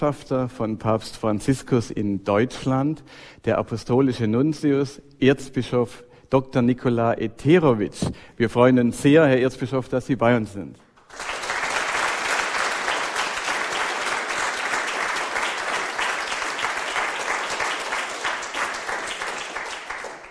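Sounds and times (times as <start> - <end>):
speech: 0.0 - 11.3
audience applause in a hall: 11.0 - 20.3.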